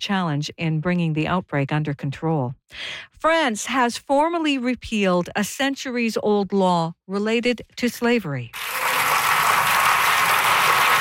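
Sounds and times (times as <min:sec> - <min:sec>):
speech: 0:00.0 - 0:08.8
applause in the French National Assembly: 0:08.6 - 0:11.0.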